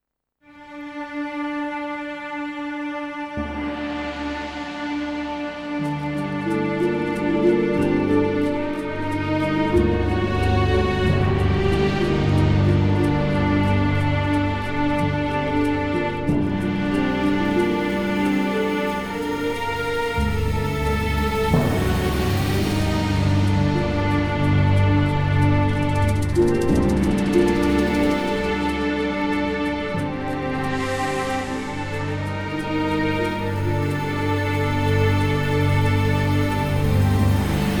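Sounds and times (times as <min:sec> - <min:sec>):
Arabic music: 0:00.0 - 0:37.7.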